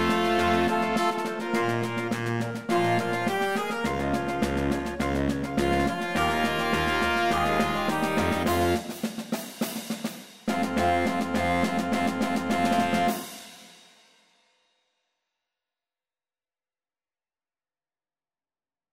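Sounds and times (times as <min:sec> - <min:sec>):
marching band: 0:00.0 - 0:13.4.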